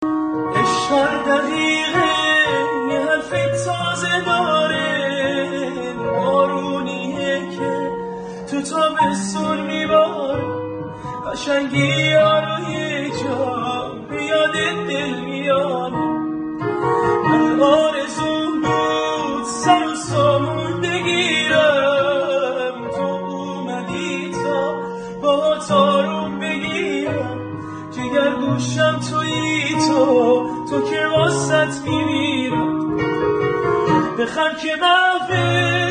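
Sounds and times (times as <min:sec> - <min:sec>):
piano: 0:00.0 - 0:35.8.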